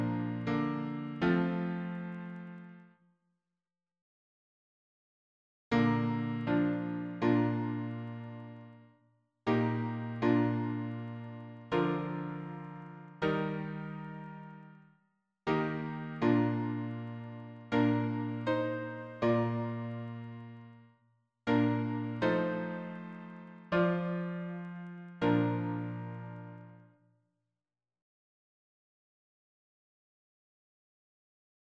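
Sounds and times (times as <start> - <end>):
piano harmony: 0.0 - 2.8, 5.8 - 8.8, 9.5 - 14.8, 15.5 - 20.8, 21.5 - 26.8.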